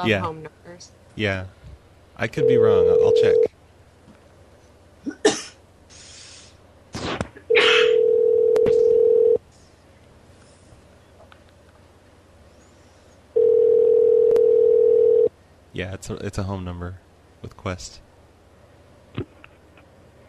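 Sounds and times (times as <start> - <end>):
speech: 0.0 - 1.6, 2.2 - 3.5, 16.0 - 18.1
phone tone: 2.3 - 3.5, 7.5 - 9.4, 13.4 - 15.3
coughing: 5.0 - 5.6, 7.5 - 8.0.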